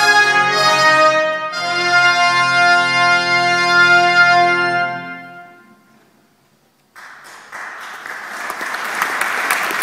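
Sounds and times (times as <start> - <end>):
two trumpets playing a fanfare: 0.0 - 5.8.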